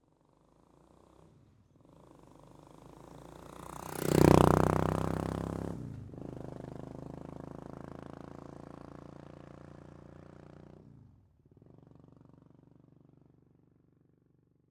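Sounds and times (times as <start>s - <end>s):
Suzuki VS 800 GL Intruder motorcycle passing by on asphalt: 2.0s - 10.9s.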